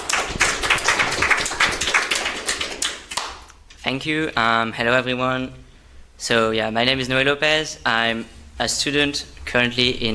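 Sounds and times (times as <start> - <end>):
audience applause: 0.0 - 3.4
speech: 3.9 - 5.6, 6.2 - 10.1.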